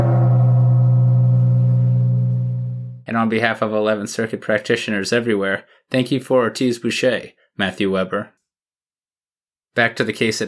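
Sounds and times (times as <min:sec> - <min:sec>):
gong sound effect: 0:00.0 - 0:03.0
speech: 0:03.1 - 0:08.4, 0:09.8 - 0:10.4.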